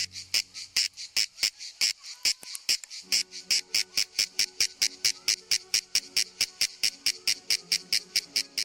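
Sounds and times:
male cicadas singing: 0:00.0 - 0:08.6.

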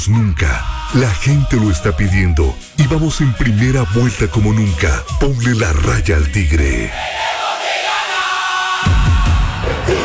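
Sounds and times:
speech: 0:00.0 - 0:07.2
large crowd roaring and cheering: 0:06.9 - 0:10.0.

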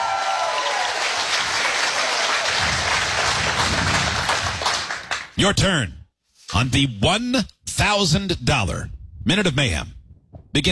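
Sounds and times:
crowd applause and cheering: 0:00.0 - 0:05.4
speech: 0:05.4 - 0:10.7.

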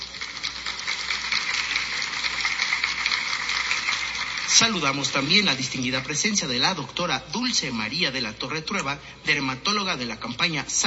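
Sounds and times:
audience applause: 0:00.0 - 0:06.1
speech: 0:04.6 - 0:10.8.

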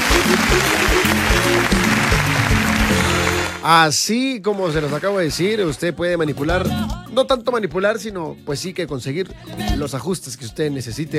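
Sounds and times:
applause: 0:00.0 - 0:03.8, 0:04.6 - 0:05.8
speech: 0:00.3 - 0:00.8, 0:03.6 - 0:11.1.

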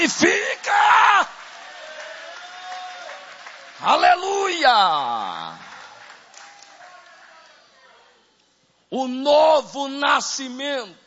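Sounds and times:
speech: 0:00.0 - 0:01.3, 0:03.8 - 0:05.6, 0:08.9 - 0:11.0
audience applauding: 0:00.0 - 0:07.6.

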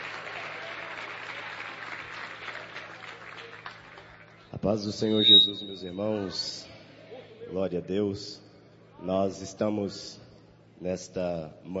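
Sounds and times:
audience applauding: 0:00.0 - 0:04.4
speech: 0:04.7 - 0:06.7, 0:07.5 - 0:08.4, 0:09.0 - 0:10.2, 0:10.8 - 0:11.7.

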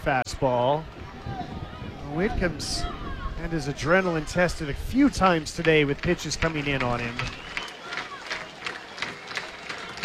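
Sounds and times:
speech: 0:00.0 - 0:01.5, 0:02.1 - 0:07.6
stadium crowd noise: 0:00.0 - 0:10.0
stadium crowd clapping in rhythm: 0:05.6 - 0:10.0.

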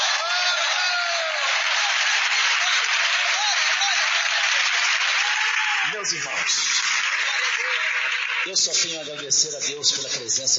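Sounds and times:
church audience applauding: 0:00.0 - 0:10.5
speech: 0:06.0 - 0:06.7, 0:08.4 - 0:10.5.

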